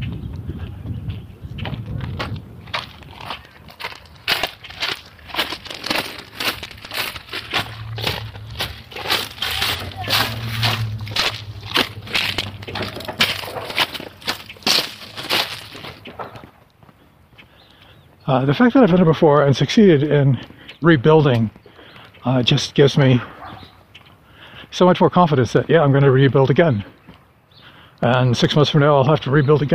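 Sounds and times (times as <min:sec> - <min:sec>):
boots crunching on rock: 0:01.7 - 0:17.0
low rumble: 0:05.6 - 0:16.1
speech: 0:18.3 - 0:21.6, 0:22.2 - 0:23.3, 0:24.8 - 0:26.9, 0:28.0 - 0:29.7.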